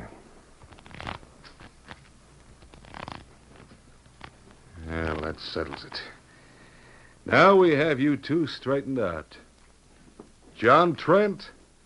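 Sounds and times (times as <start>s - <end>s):
deck of playing cards riffled at a card table: 0.6s - 6.1s
speech: 5.3s - 6.2s, 7.3s - 9.4s, 10.6s - 11.6s.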